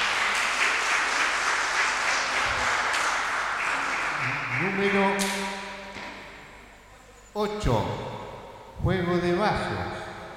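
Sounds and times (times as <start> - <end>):
audience applause: 0.0 - 5.4
speech: 4.8 - 5.6, 7.4 - 8.1, 8.8 - 10.0.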